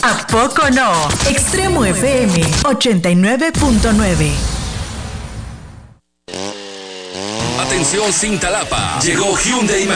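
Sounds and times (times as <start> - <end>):
speech: 0.0 - 4.6, 7.8 - 9.9
20-inch Raptor chainsaw roaring at full throttle: 6.3 - 9.9.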